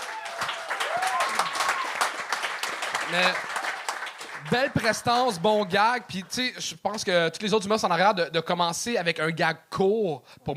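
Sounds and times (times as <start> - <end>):
audience applause: 0.0 - 6.4
speech: 3.1 - 3.5, 4.4 - 10.5.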